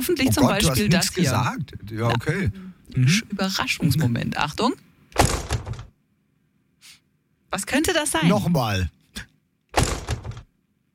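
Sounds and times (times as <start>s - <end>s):
speech: 0.0s - 5.4s, 7.5s - 9.3s
door or cupboard slammed shut: 5.2s - 5.9s, 9.8s - 10.5s.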